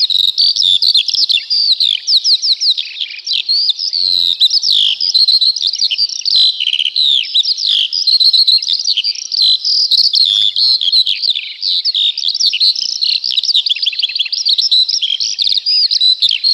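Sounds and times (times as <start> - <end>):
Eurasian skylark song: 0.0 - 16.5.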